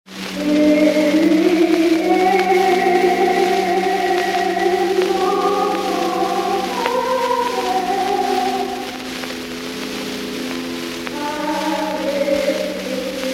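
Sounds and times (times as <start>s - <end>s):
singing in church on Easter: 0.1s - 13.3s.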